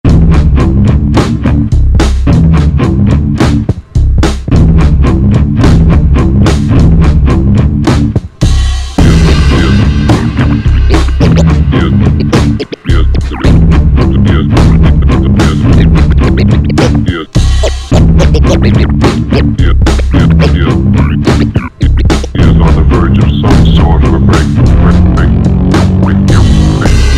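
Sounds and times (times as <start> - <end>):
music loops: 0.1 - 27.1
laughter: 10.9 - 25.3.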